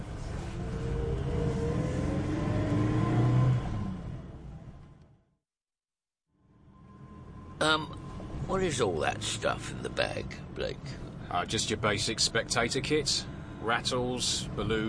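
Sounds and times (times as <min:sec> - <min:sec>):
car engine revving as a father drives away in his child's car: 0:00.2 - 0:04.8
speech: 0:07.6 - 0:14.8.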